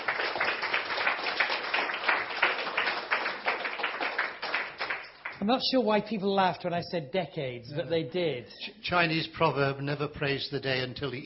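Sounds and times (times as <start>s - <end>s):
audience applause welcoming a speaker: 0.0s - 5.4s
speech: 5.4s - 11.2s.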